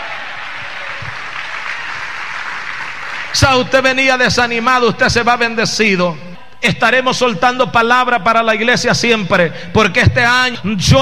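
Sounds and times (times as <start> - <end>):
crowd applause: 0.0 - 3.4
speech: 3.4 - 11.0.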